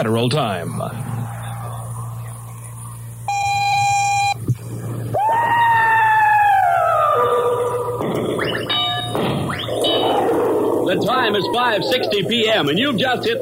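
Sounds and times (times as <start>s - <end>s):
speech: 0.0s - 1.1s, 11.0s - 13.3s
low constant hum: 0.0s - 13.3s
radio station automatic time signal tone: 3.2s - 4.4s, 8.4s - 10.2s.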